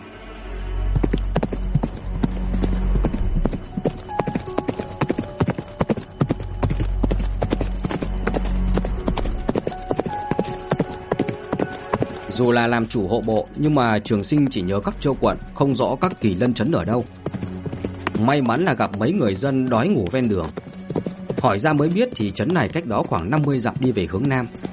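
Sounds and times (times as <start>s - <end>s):
low rumbling: 0.0s - 11.1s, 12.3s - 18.7s
horse hooves galloping: 0.9s - 24.7s
speech: 12.4s - 17.4s, 18.2s - 20.7s, 21.4s - 24.7s.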